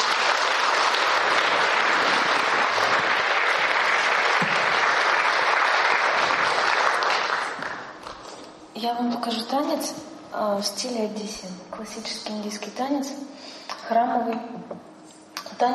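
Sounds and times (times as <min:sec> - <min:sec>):
audience applause: 0:00.0 - 0:08.2
speech: 0:09.3 - 0:14.9, 0:15.6 - 0:15.7.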